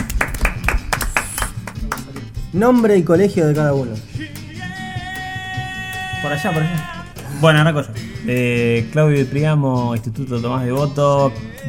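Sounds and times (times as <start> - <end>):
rhythmic clapping welcoming a guest: 0.0 - 2.9, 6.4 - 8.8
speech: 2.5 - 4.1, 6.2 - 11.6.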